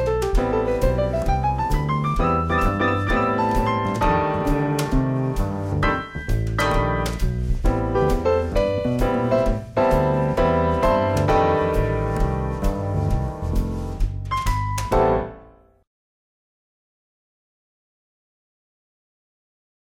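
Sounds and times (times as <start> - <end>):
tap dance ball and heel beats: 0.0 - 15.3.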